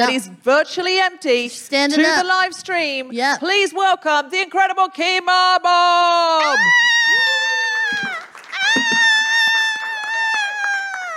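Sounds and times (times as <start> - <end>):
speech: 0.0 - 7.3
person whooping and cheering: 6.4 - 11.1.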